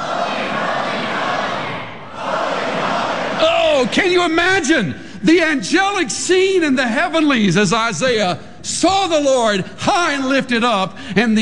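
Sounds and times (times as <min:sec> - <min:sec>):
crowd screaming: 0:00.0 - 0:04.0
speech: 0:03.9 - 0:11.4.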